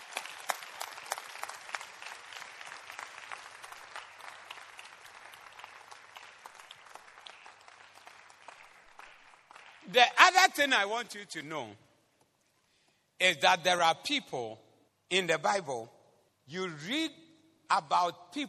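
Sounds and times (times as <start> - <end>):
audience clapping: 0.0 - 10.7
speech: 9.9 - 11.8, 13.2 - 18.4.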